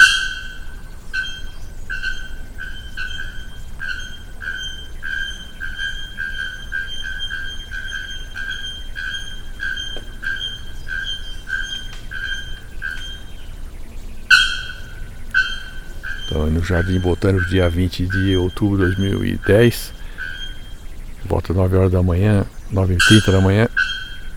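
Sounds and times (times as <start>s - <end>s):
bare-throated bellbird calling: 0.0s - 24.3s
steady low background rumble: 0.0s - 24.3s
speech: 16.4s - 20.0s, 21.3s - 23.7s.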